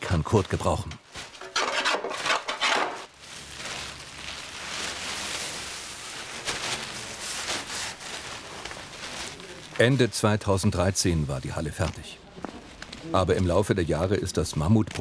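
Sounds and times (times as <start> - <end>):
speech: 0.2 - 1.0, 9.8 - 12.2, 13.0 - 14.9
wood being sawn and planed for a boat hull template: 1.4 - 3.0.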